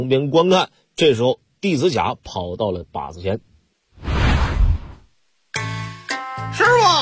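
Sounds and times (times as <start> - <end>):
speech: 0.0 - 3.5
arrow shot from a bow whooshing, radio drama sound effect: 4.0 - 5.1.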